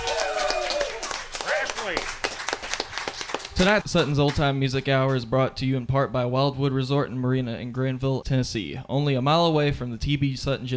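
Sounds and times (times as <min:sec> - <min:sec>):
audience applause: 0:00.0 - 0:04.5
speech: 0:03.6 - 0:10.7.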